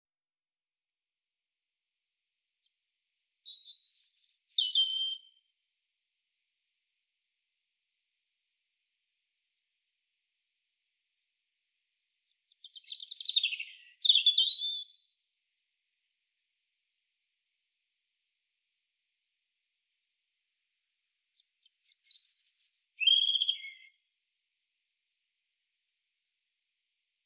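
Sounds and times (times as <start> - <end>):
European robin warbling song: 2.8 - 5.4, 12.5 - 15.0, 21.6 - 23.9.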